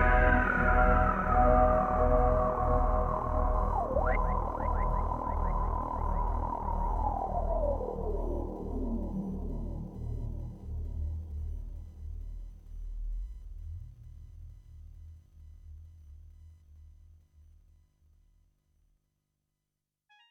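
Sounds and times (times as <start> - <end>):
resonant synth pad: 0.0 - 9.8.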